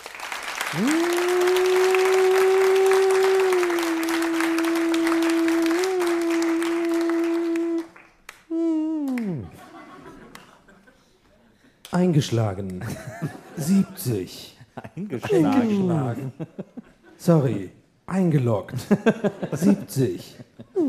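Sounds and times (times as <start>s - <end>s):
crowd applause: 0.0s - 8.4s
speech: 0.7s - 1.2s, 12.2s - 16.6s, 17.2s - 20.8s
laughter: 9.0s - 11.5s, 12.8s - 17.7s, 18.7s - 20.8s.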